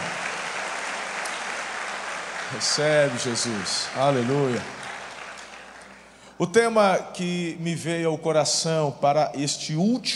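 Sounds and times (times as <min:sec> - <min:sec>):
audience applauding: 0:00.0 - 0:06.3
speech: 0:02.5 - 0:04.8, 0:06.4 - 0:10.1.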